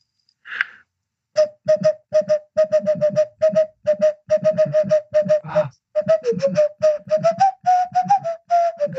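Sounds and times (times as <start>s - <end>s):
whistled melody from a pirate film theme: 1.4s - 8.9s
brief breathy sound: 5.4s - 5.8s.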